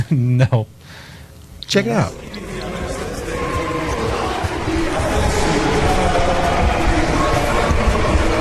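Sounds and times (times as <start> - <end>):
speech: 0.1 - 2.7
haka dance chanting: 2.0 - 8.4.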